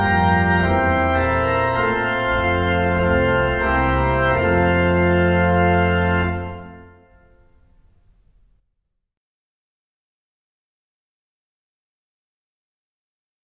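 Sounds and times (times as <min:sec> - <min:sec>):
brass ensemble playing a Christmas carol: 0:00.0 - 0:07.9.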